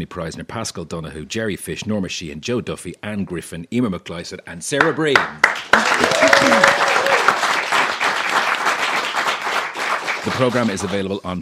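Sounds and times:
speech: 0:00.0 - 0:06.9, 0:10.2 - 0:11.3
round of applause: 0:04.8 - 0:11.1.

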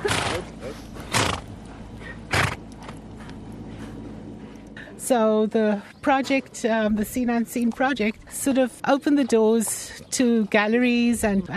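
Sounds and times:
horses racing past: 0:00.0 - 0:03.2
speech: 0:05.0 - 0:11.5.

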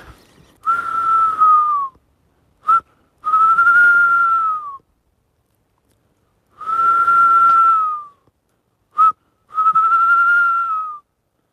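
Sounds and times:
person whistling tawny owl call imitation: 0:00.5 - 0:02.0, 0:02.6 - 0:04.8, 0:06.6 - 0:08.2, 0:08.9 - 0:11.1.

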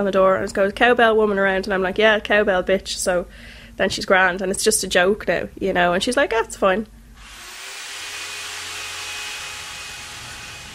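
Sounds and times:
speech: 0:00.0 - 0:07.0
neighbour's power drill running: 0:07.2 - 0:10.7.

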